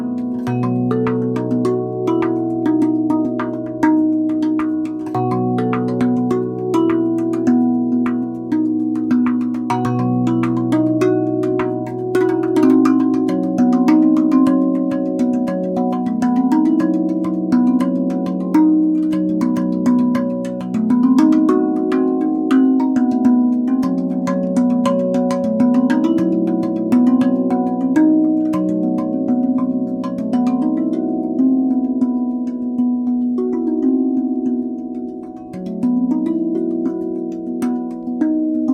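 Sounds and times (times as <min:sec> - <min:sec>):
RAV Vast steel tongue drum in Hijaz B flat: 0:00.0 - 0:38.7.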